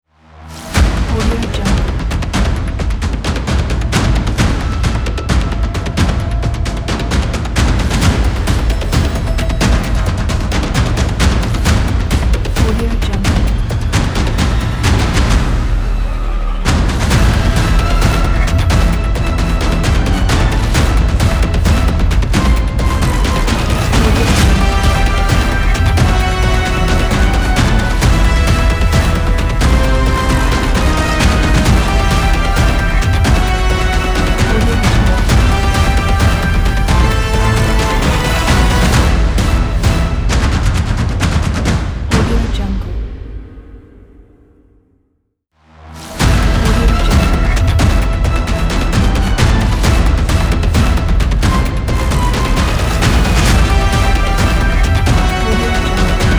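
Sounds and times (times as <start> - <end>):
action trailer music: 0.0 - 45.0, 45.6 - 56.3.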